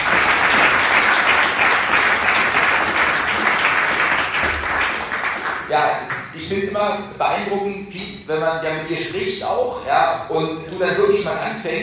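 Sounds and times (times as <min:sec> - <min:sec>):
sustained audience applause: 0:00.0 - 0:05.8
speech: 0:05.8 - 0:11.8.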